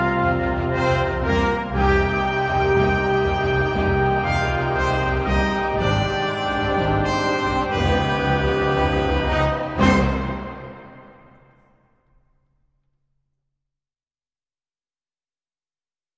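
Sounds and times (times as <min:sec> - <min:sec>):
tension-building music: 0:00.0 - 0:12.4.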